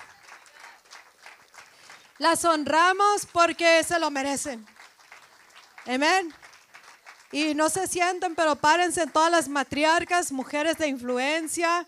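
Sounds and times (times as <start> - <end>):
audience applauding: 0.0 - 2.2, 4.6 - 9.4
speech: 2.2 - 4.8, 5.8 - 6.4, 7.3 - 11.8.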